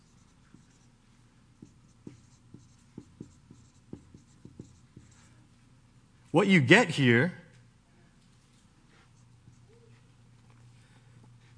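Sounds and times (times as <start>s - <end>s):
pen or chalk scratching while writing by hand: 0.0s - 0.9s, 1.6s - 5.3s
speech: 6.4s - 7.4s.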